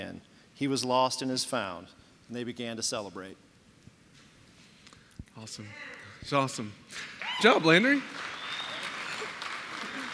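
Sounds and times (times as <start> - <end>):
speech: 0.1 - 3.5, 5.4 - 8.3
audience clapping: 7.0 - 10.1.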